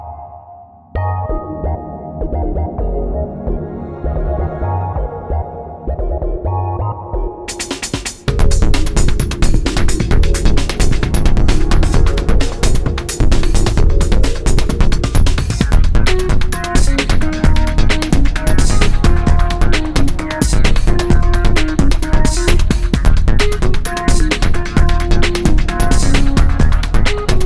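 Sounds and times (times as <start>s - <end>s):
bleep machine loop: 1.0s - 27.4s.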